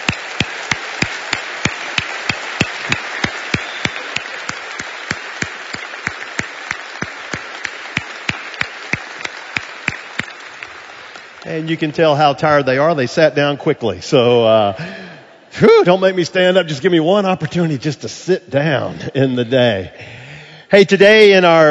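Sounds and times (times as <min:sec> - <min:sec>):
audience applause: 0:00.0 - 0:12.0
speech: 0:11.5 - 0:15.0, 0:15.6 - 0:21.6.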